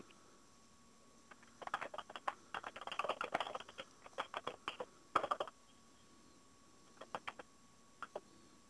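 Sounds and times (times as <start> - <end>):
typing a URL and password on a computer keyboard: 1.3 - 5.6, 7.0 - 8.2.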